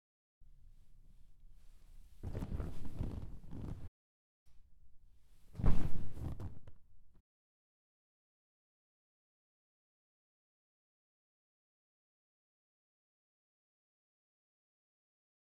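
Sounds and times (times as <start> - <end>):
person sitting and falling onto couch: 2.2 - 3.9, 5.6 - 6.7.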